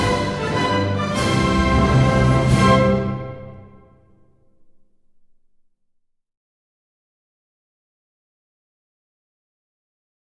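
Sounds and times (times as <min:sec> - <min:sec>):
national anthem: 0:00.0 - 0:04.2.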